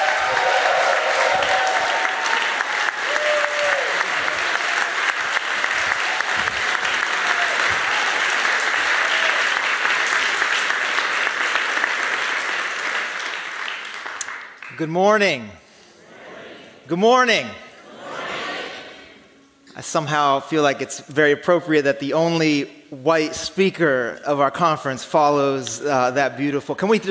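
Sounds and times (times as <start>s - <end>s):
conference audience applause: 0.0s - 14.8s
speech: 14.8s - 15.6s, 16.9s - 17.6s, 19.8s - 27.0s.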